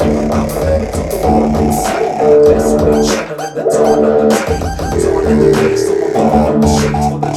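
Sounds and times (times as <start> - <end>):
music loop: 0.0 - 7.3.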